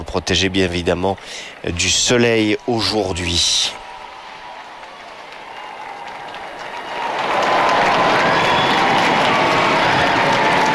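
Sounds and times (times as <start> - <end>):
huge crowd cheering and applauding: 0.0 - 10.7
speech: 0.1 - 3.8
whistles: 7.9 - 10.2.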